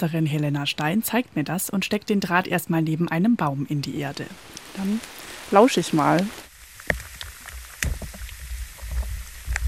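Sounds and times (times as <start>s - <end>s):
speech: 0.0s - 7.0s
underground water flowing: 3.9s - 9.6s.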